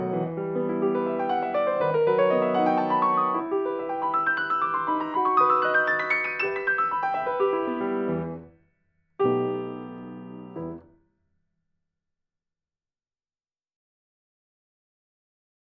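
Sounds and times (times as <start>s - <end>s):
piano prelude in E minor: 0.0s - 8.6s, 9.2s - 11.0s.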